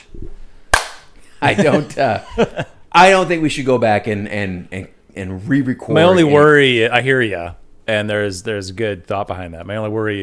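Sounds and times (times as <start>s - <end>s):
hand slap high five: 0.7s - 1.1s
laughter: 1.4s - 2.8s
speech: 1.4s - 10.2s.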